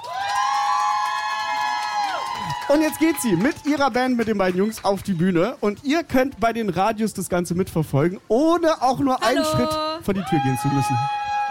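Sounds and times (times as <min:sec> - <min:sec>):
loud sustained high whoop: 0:00.0 - 0:03.6, 0:09.6 - 0:11.5
audience applauding and cheering for a performer going on stage: 0:00.0 - 0:05.5, 0:09.5 - 0:11.5
speech: 0:02.7 - 0:11.2.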